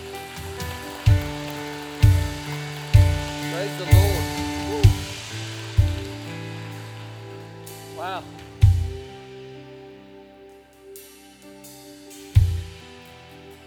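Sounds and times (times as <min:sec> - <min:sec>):
audience clapping: 0:00.0 - 0:09.1
speech: 0:08.1 - 0:08.5.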